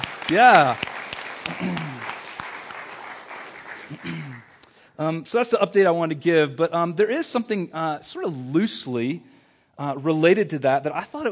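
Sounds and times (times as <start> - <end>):
audience applause: 0.0 - 4.6
speech: 0.3 - 0.8, 1.6 - 1.9, 3.9 - 4.3, 5.0 - 11.3.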